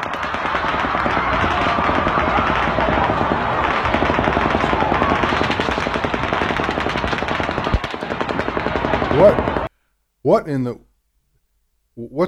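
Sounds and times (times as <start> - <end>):
automatic gunfire as a concert ends: 0.0 - 9.7.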